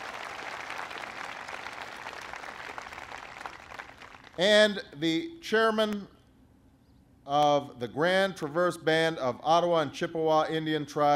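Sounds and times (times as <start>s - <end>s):
crowd applauding: 0.0s - 4.4s
speech: 4.4s - 6.2s, 7.3s - 11.1s.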